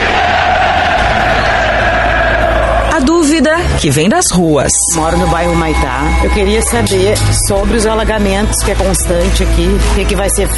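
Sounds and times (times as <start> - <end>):
football fans shouting together: 0.0 - 3.5
speech: 3.8 - 10.5.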